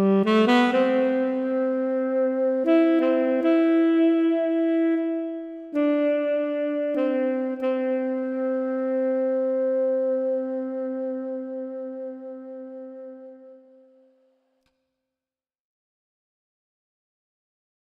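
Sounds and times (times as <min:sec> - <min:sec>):
tenor sax solo: 0:00.0 - 0:14.1.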